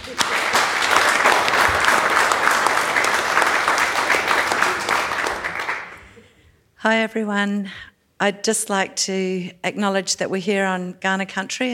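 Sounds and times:
audience applause: 0.0s - 6.2s
speech: 6.8s - 11.7s.

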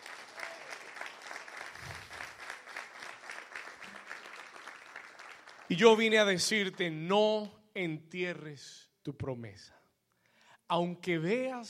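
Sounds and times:
crowd applause: 0.0s - 5.9s
speech: 5.7s - 9.8s, 10.7s - 11.6s.

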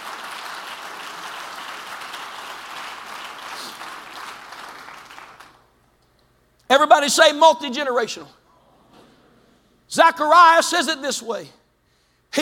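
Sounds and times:
crowd clapping: 0.0s - 6.1s
speech: 6.7s - 8.4s, 10.0s - 11.6s.

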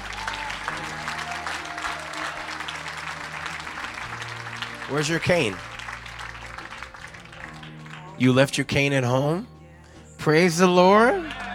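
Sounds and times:
voices shouting and cheering: 0.0s - 5.7s, 10.2s - 11.5s
crowd clapping: 0.0s - 9.1s, 10.9s - 11.5s
low organ-like hum: 0.0s - 11.5s
speech: 4.9s - 5.7s, 8.2s - 9.5s, 10.2s - 11.4s.

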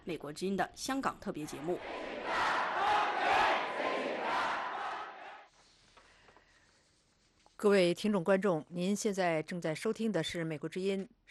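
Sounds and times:
speech: 0.1s - 3.4s, 7.6s - 11.3s
protest rally crowd shouting: 1.4s - 5.5s.

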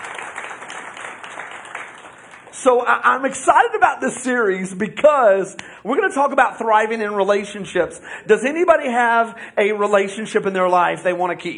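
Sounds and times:
audience hand clapping: 0.0s - 2.8s
speech: 2.6s - 11.5s.

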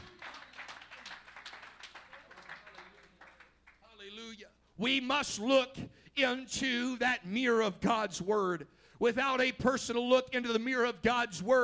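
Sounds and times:
audience clapping: 0.0s - 4.1s
speech: 4.4s - 11.6s.

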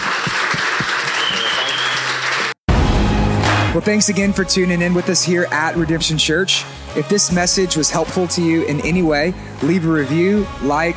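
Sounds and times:
audience round of applause: 0.0s - 2.6s
speech: 3.8s - 10.9s.

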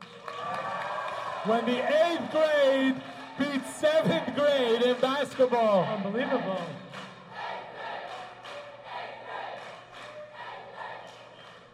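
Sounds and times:
group of children cheering: 0.0s - 4.2s
speech: 1.4s - 6.8s.

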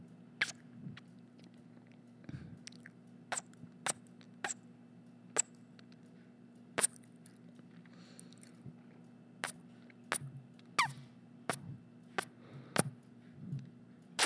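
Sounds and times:
kissing sounds: 0.4s - 0.7s, 3.3s - 4.6s, 6.8s - 7.0s, 9.5s - 12.9s
eating sounds: 0.4s - 4.6s, 6.8s - 8.9s
mouth smacking: 0.4s - 4.6s, 6.8s - 7.1s, 9.5s - 12.9s, 13.5s - 14.2s.

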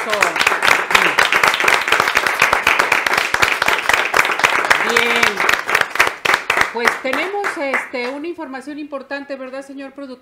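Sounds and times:
speech: 0.0s - 0.4s, 6.8s - 10.2s
crowd applause: 0.0s - 7.8s.

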